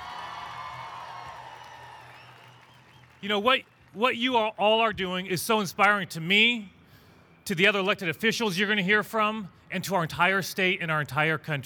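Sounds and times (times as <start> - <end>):
crowd applause: 0.0 - 4.0
speech: 3.2 - 6.8, 7.5 - 11.6.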